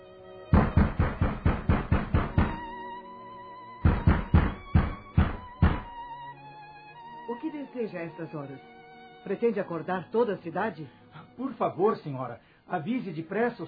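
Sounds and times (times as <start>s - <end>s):
hurried loud knocking on a door: 0.5s - 2.7s, 3.8s - 6.0s
speech: 7.4s - 13.6s.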